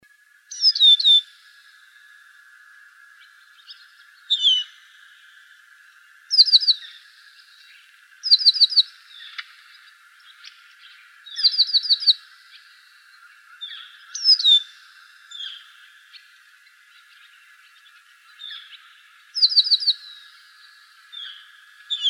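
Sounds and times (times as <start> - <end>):
finches calling: 0.5 - 1.4, 3.0 - 22.0.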